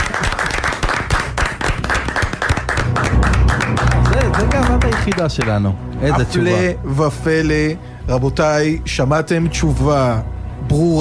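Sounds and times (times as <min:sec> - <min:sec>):
crowd applauding: 0:00.0 - 0:05.8
speech: 0:05.0 - 0:11.0.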